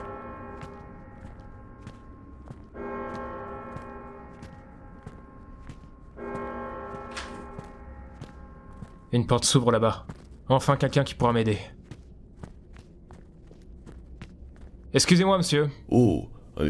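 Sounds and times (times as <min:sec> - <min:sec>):
church bell tolling: 0:00.0 - 0:01.8, 0:02.7 - 0:09.6
footsteps: 0:00.0 - 0:15.5
speech: 0:09.1 - 0:11.8, 0:15.0 - 0:16.6.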